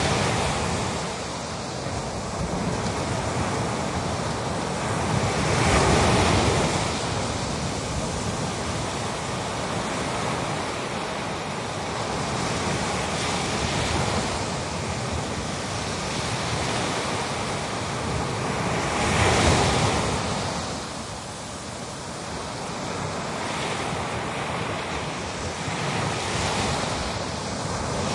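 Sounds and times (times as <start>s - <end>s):
Atlantic Ocean surf waves crashing on a beach: 0.0s - 28.1s.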